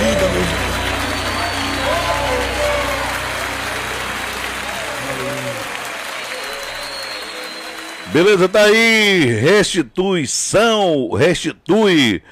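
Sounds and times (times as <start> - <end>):
audience applauding: 0.0 - 9.6
speech: 8.1 - 12.3.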